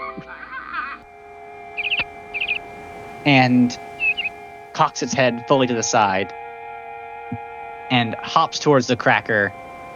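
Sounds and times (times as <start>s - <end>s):
laughter: 0.0s - 1.0s
bird whistling: 1.0s - 5.2s, 8.2s - 9.9s
steady low hum: 1.0s - 9.9s
softer warbling tone: 1.1s - 5.2s
speech: 3.2s - 3.9s, 4.8s - 6.4s, 7.3s - 9.6s.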